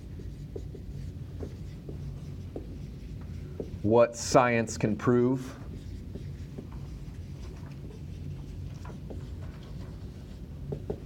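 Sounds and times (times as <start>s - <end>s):
steady low hum: 0.0s - 11.0s
writing on a board: 0.0s - 11.0s
speech: 3.9s - 5.6s.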